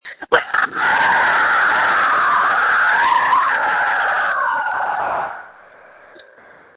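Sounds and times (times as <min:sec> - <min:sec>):
person screaming: 0:00.3 - 0:05.4.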